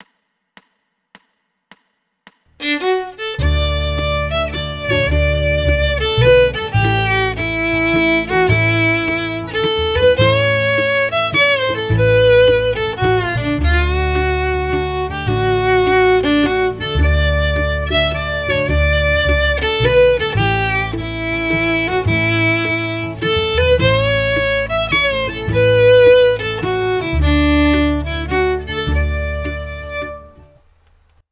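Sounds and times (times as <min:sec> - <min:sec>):
fiddle playing a waltz: 0:02.6 - 0:30.6.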